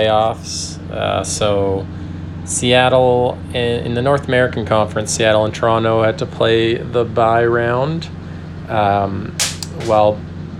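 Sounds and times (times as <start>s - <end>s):
speech: 0.0s - 10.3s
rocks exploding while being boiled: 9.4s - 10.0s.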